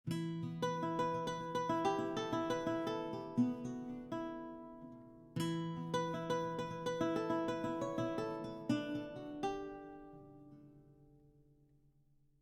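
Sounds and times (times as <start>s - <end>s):
baroque guitar: 0.1s - 11.2s.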